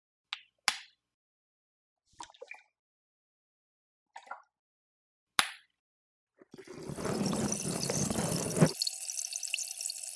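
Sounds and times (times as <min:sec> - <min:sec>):
fizzing bubble water in ear canal: 0:06.6 - 0:10.1
wet clicks and drips: 0:06.7 - 0:10.1.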